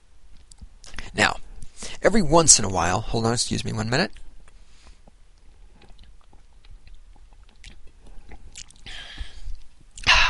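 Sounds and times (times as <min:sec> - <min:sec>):
speech: 0:02.0 - 0:04.2
person drinking a sip of water: 0:04.9 - 0:10.1.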